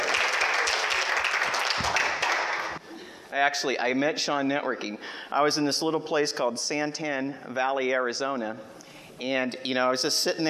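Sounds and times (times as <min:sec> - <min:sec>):
audience applause: 0:00.0 - 0:02.8
speech: 0:03.3 - 0:10.4.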